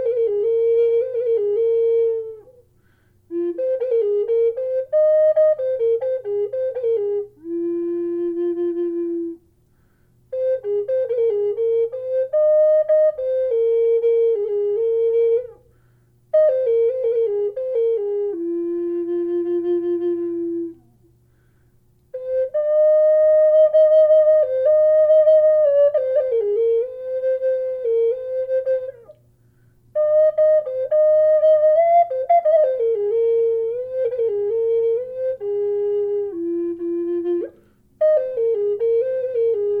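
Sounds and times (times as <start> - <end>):
amboyna wood flute in F: 0.0 - 21.2, 22.0 - 39.7.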